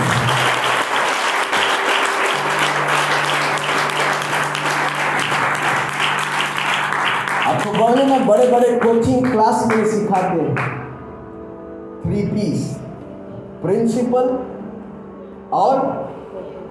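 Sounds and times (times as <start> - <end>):
audience applause: 0.0 - 9.9
speech: 8.2 - 10.8, 12.1 - 12.8, 13.6 - 14.5, 15.5 - 16.6.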